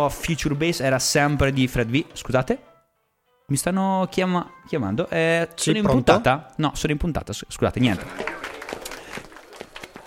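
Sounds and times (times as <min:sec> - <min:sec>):
speech: 0:00.0 - 0:02.7, 0:03.5 - 0:08.3
person applauding: 0:07.8 - 0:10.0.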